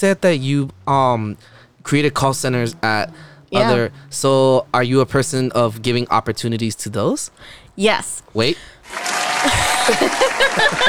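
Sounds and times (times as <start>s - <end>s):
speech: 0.0s - 10.8s
laughter: 0.9s - 5.7s, 9.4s - 10.8s
crowd cheering with whoops and shouts: 1.9s - 4.6s, 8.8s - 10.8s
crowd applause: 8.8s - 10.8s.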